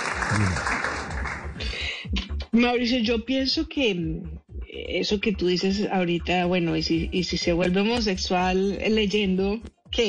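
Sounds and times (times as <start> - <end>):
audience applause: 0.0 - 1.6
speech: 0.3 - 0.8, 2.1 - 10.0.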